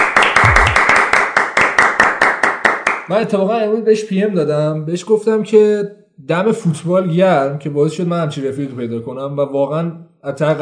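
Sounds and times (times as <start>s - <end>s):
hands clapping for a birthday: 0.0s - 3.1s
speech: 3.1s - 10.6s.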